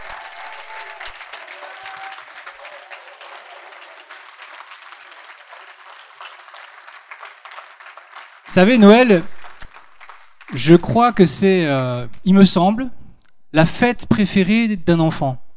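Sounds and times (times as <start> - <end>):
audience applause: 0.0 - 11.0
speech: 8.5 - 9.3, 10.5 - 15.4.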